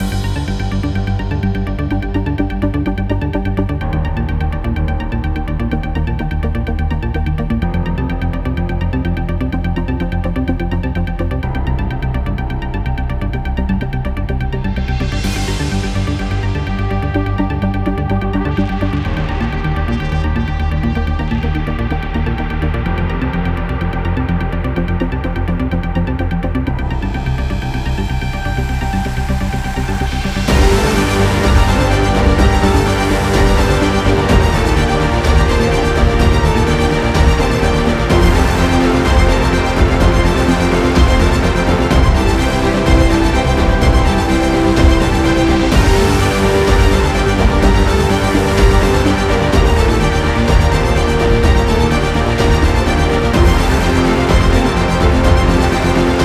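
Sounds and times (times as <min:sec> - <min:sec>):
tense horror thriller music: 0:00.0 - 0:56.2.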